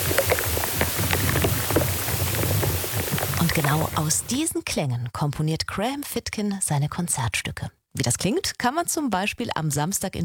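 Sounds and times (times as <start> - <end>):
popping and crackling inside a beech tree: 0.0 - 4.4
speech: 3.6 - 10.2.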